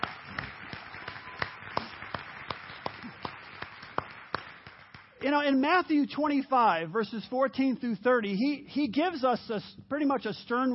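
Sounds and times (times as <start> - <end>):
audience clapping: 0.0 - 6.0
speech: 5.2 - 10.7.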